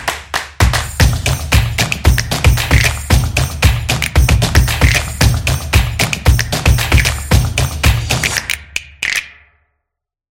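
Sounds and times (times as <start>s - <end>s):
promo drums: 0.6s - 8.6s.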